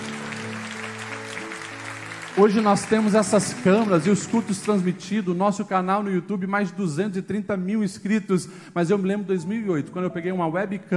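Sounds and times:
audience applauding: 0.0s - 6.1s
speech: 2.4s - 10.9s.

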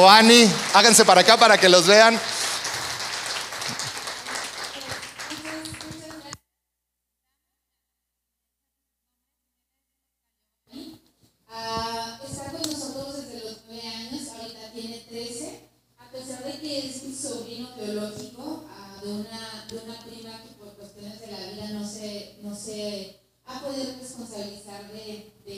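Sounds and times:
speech: 0.0s - 2.4s
audience applause: 0.0s - 6.3s.

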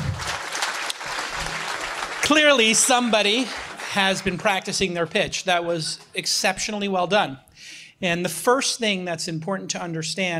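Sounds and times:
audience applause: 0.0s - 5.2s
speech: 2.3s - 10.3s.

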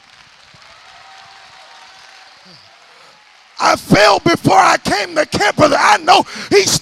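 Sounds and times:
audience clapping: 0.0s - 5.2s
speech: 2.5s - 2.7s, 3.6s - 6.8s.

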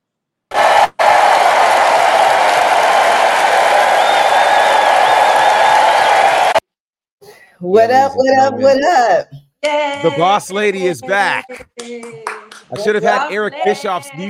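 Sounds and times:
canned applause sound effect: 0.5s - 6.6s
whistles and cheers: 0.5s - 6.6s
speech: 7.6s - 14.2s.

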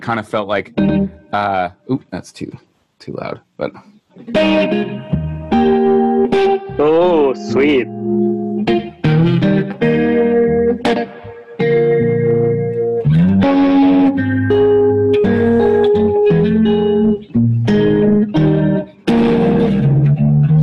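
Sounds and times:
speech: 0.0s - 8.8s
electric guitar notes and chords with slap delay and chorus effect: 4.3s - 20.6s.

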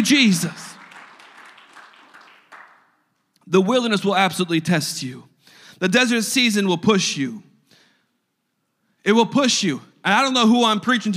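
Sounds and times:
speech: 0.0s - 0.7s, 3.5s - 7.5s, 9.0s - 11.1s
crowd clapping hands: 0.0s - 3.1s.

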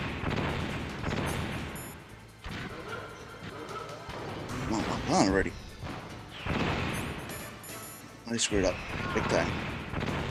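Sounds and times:
turret gunfire in the video game Metal Gear Solid Integral: 0.0s - 2.9s, 5.8s - 7.3s, 8.8s - 10.2s
speech: 4.8s - 5.6s, 8.3s - 9.7s.

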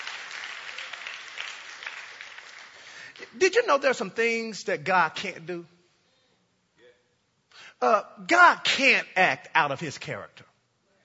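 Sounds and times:
audience applause: 0.0s - 3.2s
speech: 3.2s - 5.8s, 7.8s - 10.5s.

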